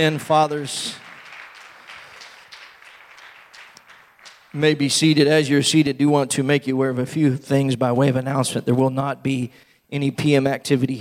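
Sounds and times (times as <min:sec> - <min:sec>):
speech: 0:00.0 - 0:01.0, 0:04.5 - 0:10.9
applause: 0:00.0 - 0:05.2.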